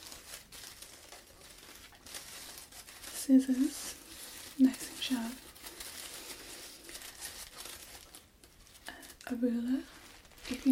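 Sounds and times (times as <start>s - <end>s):
tissue paper crinkling: 0.0s - 10.7s
speech: 3.3s - 4.0s, 4.6s - 5.5s, 9.3s - 10.7s.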